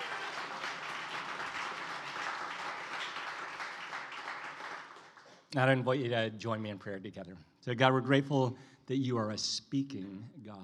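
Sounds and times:
audience applause: 0.0 - 5.3
speech: 5.5 - 10.6.

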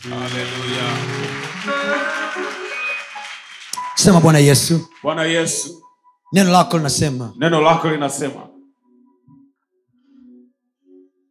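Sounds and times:
speech: 0.0 - 2.7, 4.0 - 8.5
congregation clapping during a church service: 0.0 - 5.8, 6.4 - 7.1
sustained musical tones: 0.0 - 9.5.

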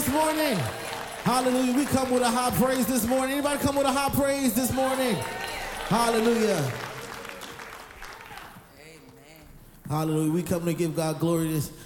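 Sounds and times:
audience clapping hands: 0.0 - 9.2
speech: 0.1 - 6.9, 9.9 - 11.8.

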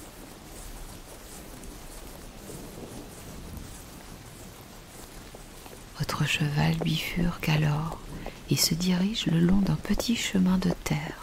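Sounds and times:
steady rain: 0.0 - 11.2
distant low thunder rumble: 1.6 - 11.2
speech: 6.1 - 11.2.

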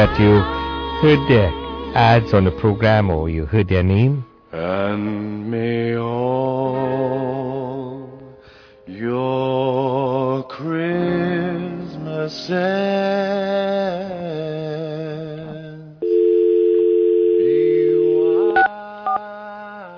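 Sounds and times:
speech: 0.0 - 8.1, 8.9 - 11.6, 12.2 - 14.6
telephone dial tone: 16.0 - 19.2.

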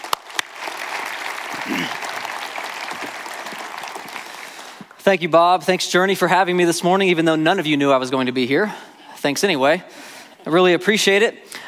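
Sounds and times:
church congregation applauding to welcome a speaker: 0.0 - 5.3
speech: 1.6 - 2.0, 5.0 - 11.5.

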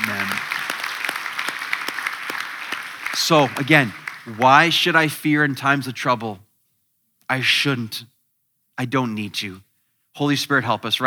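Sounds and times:
audience clapping: 0.0 - 5.5
speech: 3.2 - 6.4, 7.3 - 8.1, 8.8 - 11.0.

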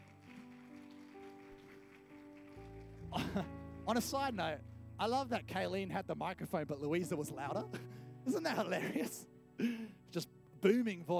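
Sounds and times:
audience clapping applause: 0.0 - 3.5
speech: 3.1 - 11.1.

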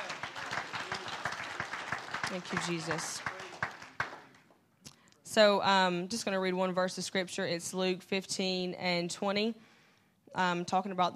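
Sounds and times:
audience clapping: 0.0 - 4.6
speech: 2.3 - 3.4, 5.3 - 9.7, 10.3 - 11.1.

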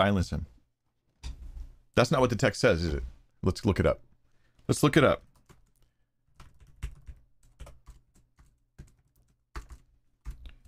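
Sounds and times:
speech: 0.0 - 0.5, 2.0 - 4.1, 4.7 - 5.3
faint typing on a computer keyboard: 5.3 - 10.6.

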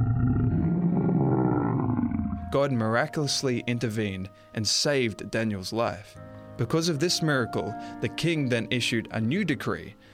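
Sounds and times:
lions roaring in the lions' den: 0.0 - 2.5
speech: 2.5 - 10.1.

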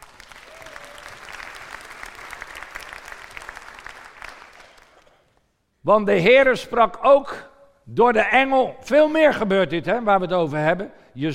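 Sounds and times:
audience applause: 0.0 - 5.2
speech: 5.8 - 11.3.

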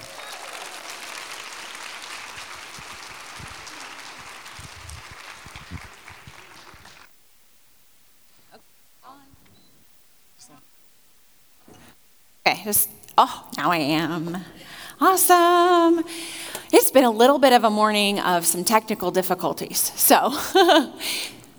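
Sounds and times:
audience applause: 0.0 - 7.1
speech: 12.6 - 21.4.

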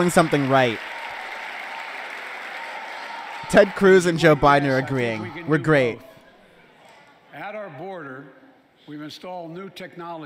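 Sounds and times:
speech: 0.0 - 0.9, 3.5 - 6.1, 8.9 - 10.2
applause: 0.0 - 5.1.

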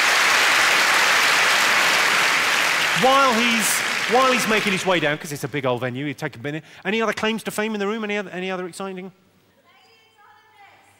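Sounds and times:
audience applause in a big comedy venue: 0.0 - 5.6
speech: 3.0 - 9.2.

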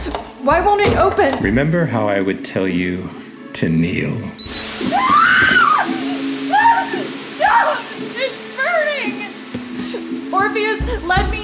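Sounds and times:
shower water running: 0.0 - 11.4
speech: 0.5 - 4.4, 10.4 - 11.4.

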